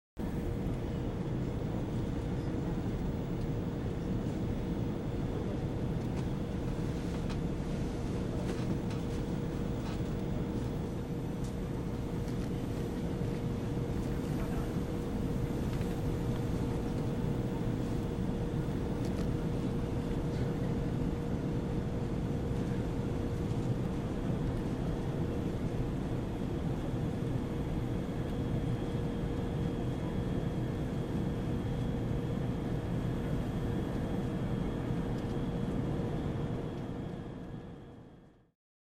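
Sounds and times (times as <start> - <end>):
modern passenger plane cabin interior hum: 0.2 - 38.5.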